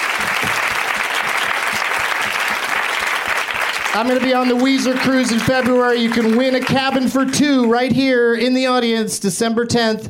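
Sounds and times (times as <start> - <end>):
studio audience applause for the show's guests: 0.0 - 8.0
speech: 3.9 - 10.0.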